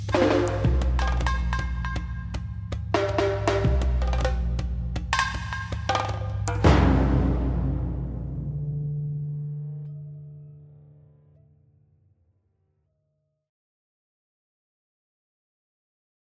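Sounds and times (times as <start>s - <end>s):
instrumental music: 0.0s - 11.7s.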